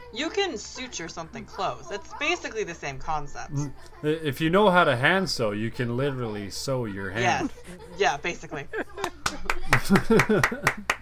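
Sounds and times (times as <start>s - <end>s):
speech: 0.1s - 11.0s
laughter: 7.2s - 11.0s
hands clapping: 9.0s - 11.0s.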